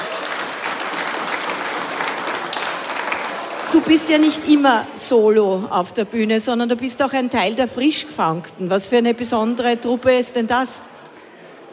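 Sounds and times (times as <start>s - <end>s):
applause: 0.0s - 4.8s
speech: 3.7s - 10.9s.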